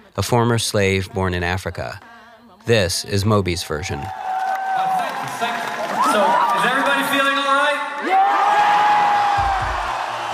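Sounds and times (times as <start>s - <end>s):
speech: 0.2s - 4.4s
live concert audience cheering and whooping: 3.8s - 10.3s.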